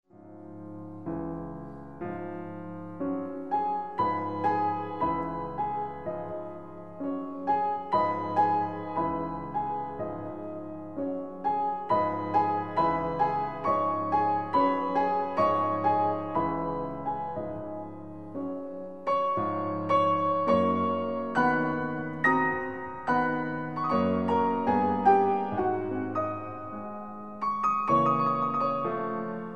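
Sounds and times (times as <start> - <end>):
prelude music: 0.1 - 29.5.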